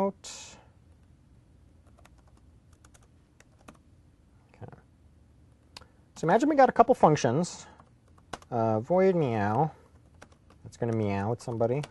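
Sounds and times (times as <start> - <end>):
speech: 0.0 - 0.5, 6.2 - 7.7, 8.5 - 9.8, 10.6 - 11.8
typing on a computer keyboard: 1.8 - 3.8, 7.8 - 8.6, 9.5 - 11.8.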